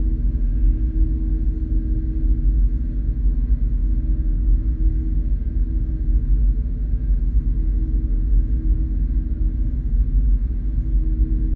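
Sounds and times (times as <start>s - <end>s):
ambience: 0.0s - 11.5s.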